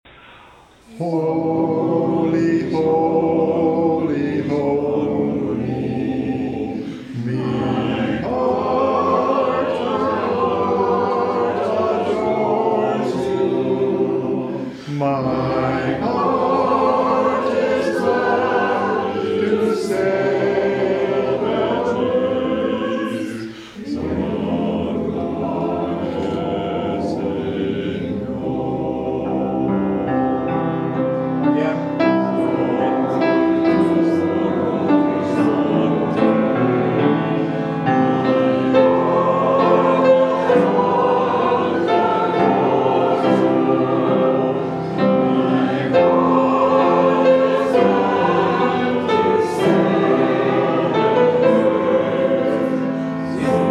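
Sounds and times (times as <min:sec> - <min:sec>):
hymn: 0:00.0 - 0:53.6.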